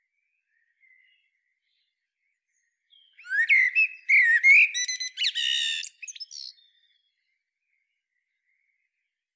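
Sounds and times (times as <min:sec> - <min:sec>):
common blackbird song: 0:00.0 - 0:09.3.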